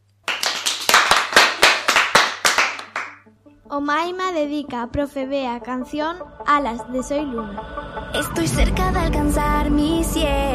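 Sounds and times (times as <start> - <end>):
brisk applause: 0.3 - 3.2
speech: 3.4 - 10.5.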